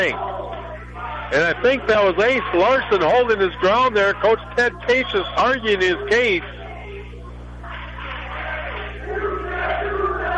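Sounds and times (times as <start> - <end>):
speech: 0.0 - 0.4, 1.3 - 6.6
crowd cheering and voices: 0.0 - 10.3
students in a crowd clapping their hands: 7.7 - 10.3.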